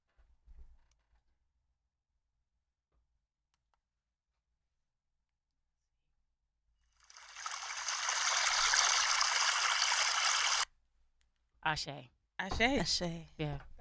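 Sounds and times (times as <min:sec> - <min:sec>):
water being poured out as libations: 0:07.0 - 0:10.6
speech: 0:11.7 - 0:13.7.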